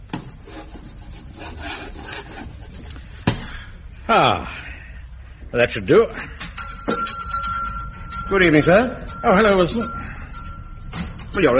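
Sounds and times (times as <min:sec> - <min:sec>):
chalk scraping across a blackboard: 0:00.2 - 0:03.0
speech: 0:04.1 - 0:04.6, 0:05.5 - 0:06.4, 0:08.3 - 0:10.0, 0:11.4 - 0:11.5.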